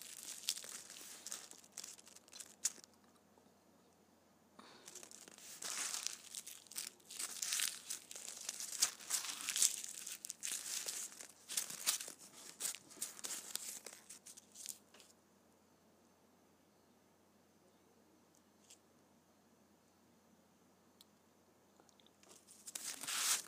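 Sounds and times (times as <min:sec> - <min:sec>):
candy wrappers crumpled and crinkled: 0:00.0 - 0:03.2, 0:04.6 - 0:15.1, 0:22.2 - 0:23.4.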